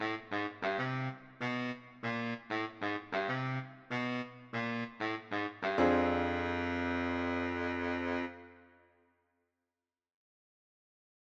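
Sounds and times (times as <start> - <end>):
baritone saxophone: 0.0 - 8.7.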